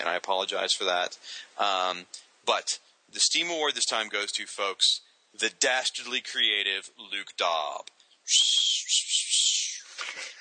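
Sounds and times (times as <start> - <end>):
speech: 0.2 - 10.4
person whistling: 8.3 - 9.9.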